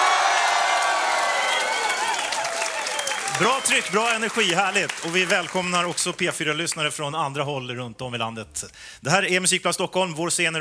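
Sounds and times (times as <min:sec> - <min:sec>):
studio audience cheering: 0:00.0 - 0:06.8
clapping: 0:00.0 - 0:06.9
speech: 0:03.4 - 0:10.6.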